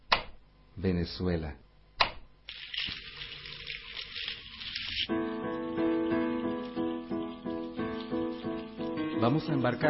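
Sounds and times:
speech: 0.8 - 1.6, 9.3 - 9.8
water running and splashing: 2.5 - 5.1, 6.1 - 9.7.

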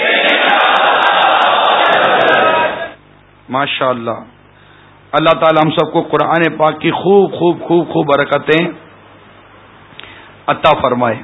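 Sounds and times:
crowd shouting the slogan Insha'Allah at an Islamic religious gathering: 0.0 - 3.0
speech: 3.5 - 4.4, 5.1 - 8.8, 10.5 - 11.2.

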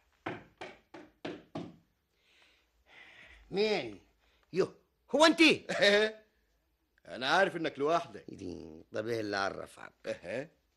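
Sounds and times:
soft hiss of noise: 0.0 - 10.7
knocking on a wooden door: 0.2 - 1.8
speech: 3.5 - 6.2, 7.1 - 10.6.

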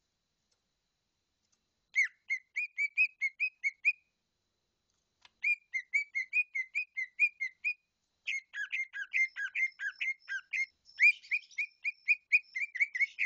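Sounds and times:
bird singing bright whistled notes in rapid bursts: 1.9 - 4.1, 5.4 - 13.2.

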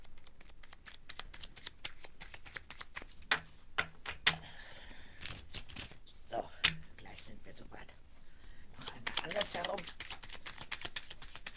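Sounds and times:
pack of playing cards shuffled in a circus caravan: 0.0 - 4.4, 5.2 - 6.0, 9.0 - 11.5.

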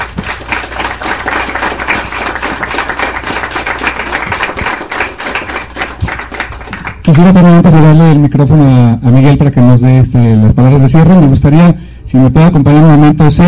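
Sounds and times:
audience applause for a comics panel at a café event: 0.0 - 7.1
speech: 7.1 - 13.4.

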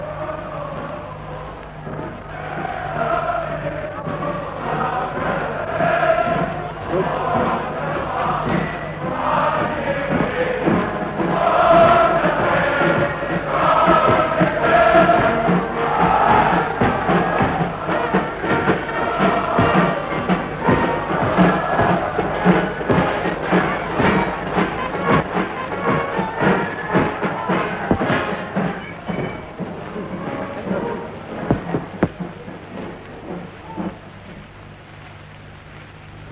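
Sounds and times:
large crowd cheering outdoors on the Day of Potsdam in 1933: 0.0 - 34.5
music drifting in through an open window: 0.0 - 36.3.

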